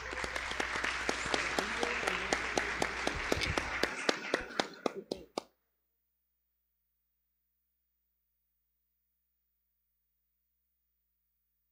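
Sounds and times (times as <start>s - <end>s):
round of applause: 0.0s - 5.6s.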